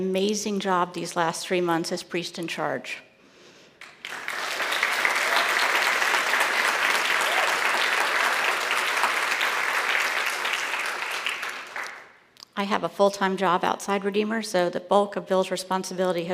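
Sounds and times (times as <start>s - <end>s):
speech: 0.0s - 3.1s, 12.6s - 16.3s
audience applause: 3.8s - 12.1s.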